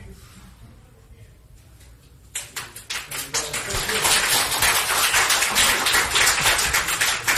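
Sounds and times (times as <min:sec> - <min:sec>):
standing ovation applause in a courtroom: 0:02.6 - 0:07.3.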